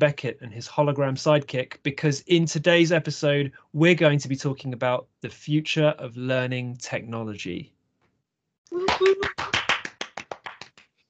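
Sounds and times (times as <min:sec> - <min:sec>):
speech: 0:00.0 - 0:07.8, 0:08.7 - 0:09.4
round of applause hand claps: 0:08.8 - 0:10.9.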